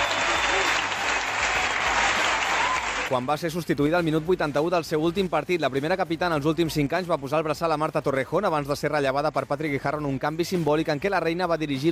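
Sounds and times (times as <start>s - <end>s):
stadium ovation from Barça supporters at the Johan Cruyff for Alexia Putellas: 0.0s - 3.1s
speech: 3.1s - 11.9s.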